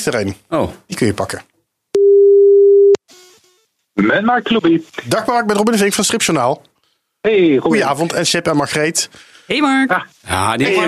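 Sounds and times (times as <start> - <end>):
speech: 0.0 - 1.5, 4.0 - 10.8
telephone ringing tone while placing a call: 2.0 - 3.0.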